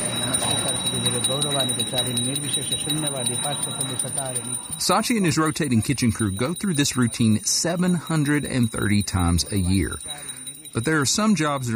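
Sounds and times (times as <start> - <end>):
small worship bell ringing: 0.0 - 11.7
speech: 1.0 - 11.7.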